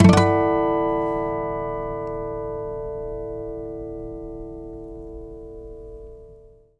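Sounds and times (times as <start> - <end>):
nylon guitar harmonics: 0.0 - 6.6.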